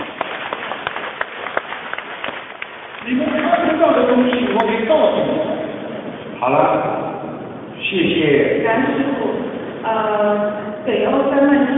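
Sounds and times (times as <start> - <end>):
audience clapping: 0.0 - 5.0
speech: 3.1 - 5.6, 6.4 - 7.0, 7.9 - 9.1, 9.8 - 11.7.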